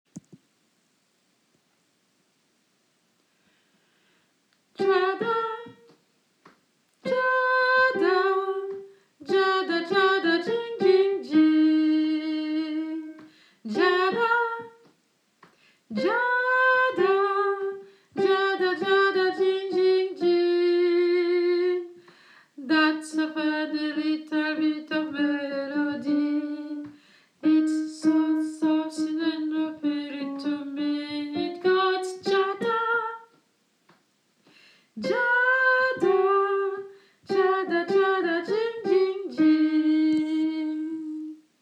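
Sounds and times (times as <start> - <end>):
alto singing: 4.8 - 6.0, 7.0 - 14.9, 15.9 - 22.0, 22.6 - 33.4, 35.0 - 41.4.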